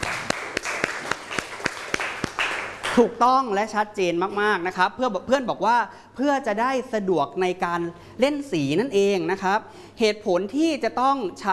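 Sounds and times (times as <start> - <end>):
classmates clapping in a classroom: 0.0 - 3.2
speech: 3.0 - 11.5.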